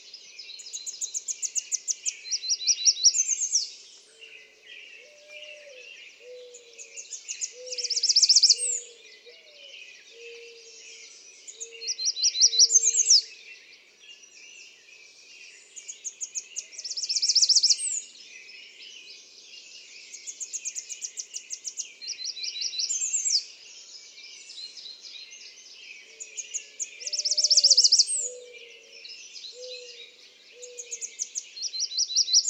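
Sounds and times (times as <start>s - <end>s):
American redstart: 0.0s - 32.4s.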